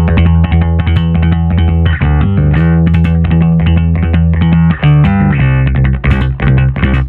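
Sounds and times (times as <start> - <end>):
bass guitar staccato notes with left-hand muting: 0.0 - 7.0.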